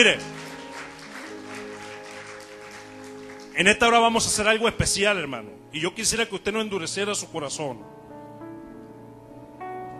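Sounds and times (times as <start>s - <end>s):
speech: 0.0s - 0.4s, 3.6s - 8.0s
audience applause: 0.0s - 3.7s.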